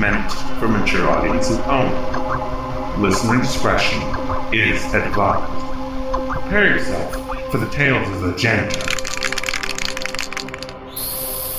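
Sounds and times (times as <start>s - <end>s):
speech: 0.0s - 5.8s, 6.5s - 9.0s
spray can hissing while spray painting grass: 8.8s - 11.5s.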